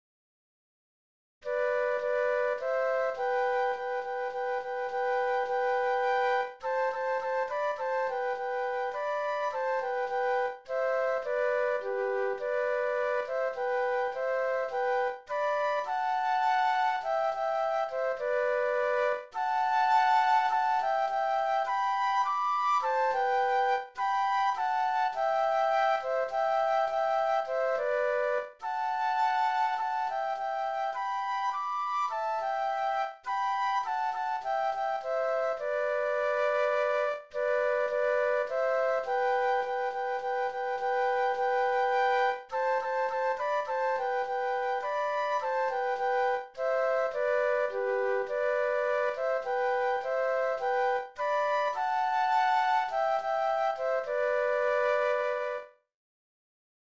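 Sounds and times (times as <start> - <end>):
flute duet: 1.4 - 55.9.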